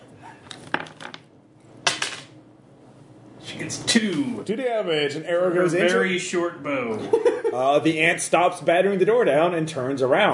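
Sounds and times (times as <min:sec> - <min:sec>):
rolling a d4 die: 0:00.5 - 0:01.3
speech: 0:03.6 - 0:10.3.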